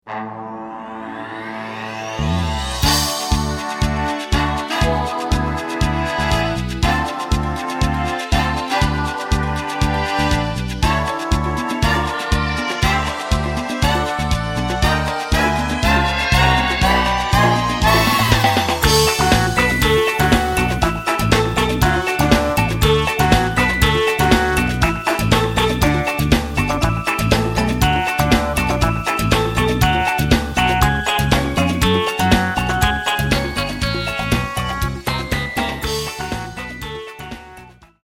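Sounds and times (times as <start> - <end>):
instrumental music: 0.1 - 38.0.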